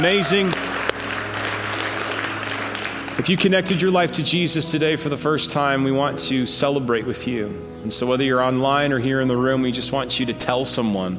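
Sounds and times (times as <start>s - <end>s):
speech: 0.0s - 0.8s, 3.2s - 11.1s
audience applauding: 0.0s - 3.7s.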